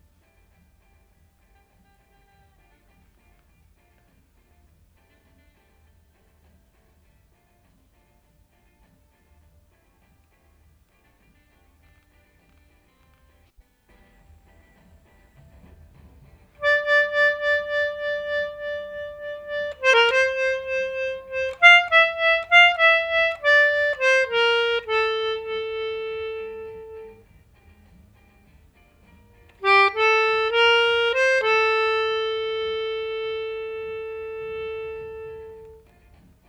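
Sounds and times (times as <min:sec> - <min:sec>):
melodica: 0:16.6 - 0:27.6, 0:29.5 - 0:36.2.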